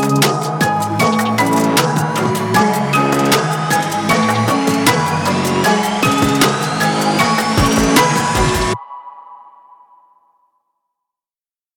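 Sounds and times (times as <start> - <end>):
dark trap beat: 0.0 - 8.8.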